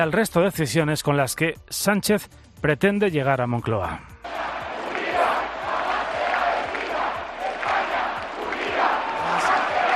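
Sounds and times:
speech: 0.0s - 4.4s
large crowd shouting and chanting in protest against the amnesty law in Madrid: 4.2s - 9.9s.

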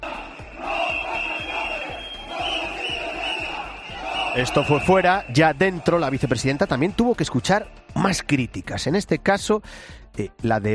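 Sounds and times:
crowd of protesters shouting: 0.0s - 6.8s
high-pitched whistle-like tone: 0.4s - 5.6s
speech: 4.4s - 10.7s.

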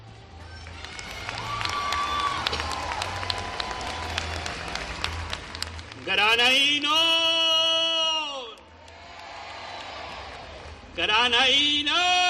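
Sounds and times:
crowd clapping: 0.4s - 7.1s, 8.4s - 11.2s
speech: 6.4s - 7.0s, 11.0s - 12.2s.

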